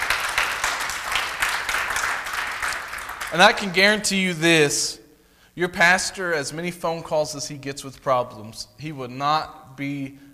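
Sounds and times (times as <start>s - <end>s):
audience applauding: 0.0s - 3.9s
speech: 3.3s - 5.0s, 5.6s - 10.3s.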